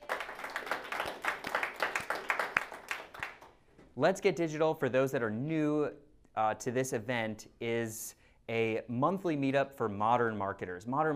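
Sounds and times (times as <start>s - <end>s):
audience applause: 0.0s - 3.5s
speech: 4.0s - 11.1s.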